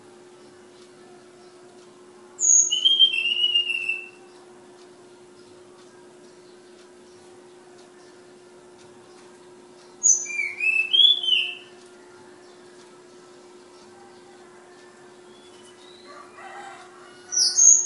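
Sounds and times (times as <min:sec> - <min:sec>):
flowerpecker whistles: 0:02.4 - 0:04.2, 0:10.0 - 0:11.7, 0:17.4 - 0:17.8.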